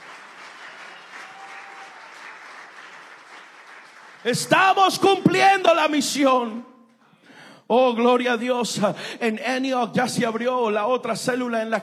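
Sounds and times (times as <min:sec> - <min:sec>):
audience applause: 0:00.0 - 0:04.3
speech: 0:04.2 - 0:06.7, 0:07.7 - 0:11.8.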